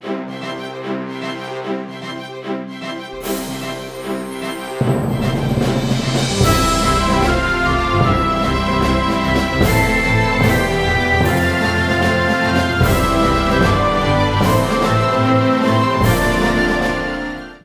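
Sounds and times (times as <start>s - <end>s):
outro music: 2.8s - 17.6s.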